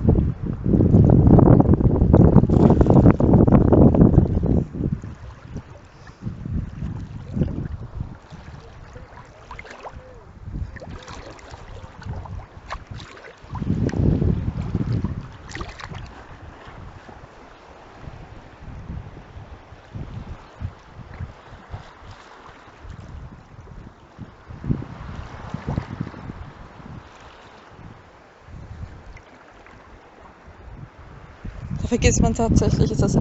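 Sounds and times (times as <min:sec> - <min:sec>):
wind: 0:00.0 - 0:33.1
rushing water: 0:00.8 - 0:23.3, 0:24.0 - 0:33.1
speech: 0:31.9 - 0:33.1.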